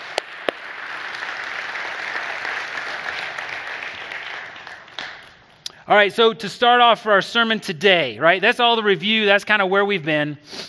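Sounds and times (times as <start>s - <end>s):
audience clapping to welcome new staff team members: 0.0s - 5.6s
speech: 5.9s - 10.6s.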